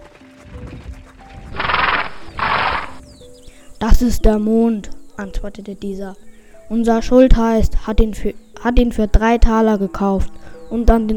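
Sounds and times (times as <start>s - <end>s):
horse hooves clopping: 0.0s - 3.1s
horse-drawn wagon rumbling past: 1.4s - 3.0s
horse neighing: 1.5s - 3.0s
speech: 3.8s - 11.1s.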